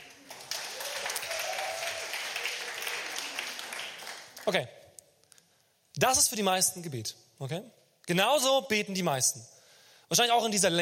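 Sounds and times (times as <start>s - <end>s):
audience applause: 0.0s - 4.5s
speech: 4.5s - 4.8s, 6.0s - 10.8s.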